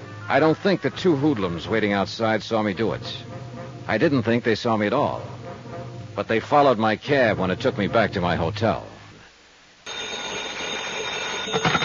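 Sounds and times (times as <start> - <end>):
speech: 0.3 - 5.4, 6.2 - 8.9
telephone ringing: 9.8 - 11.8.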